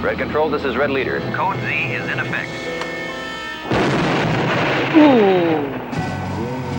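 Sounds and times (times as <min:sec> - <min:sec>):
speech: 0:00.1 - 0:02.8, 0:04.9 - 0:05.9
plane exploding: 0:03.7 - 0:06.7.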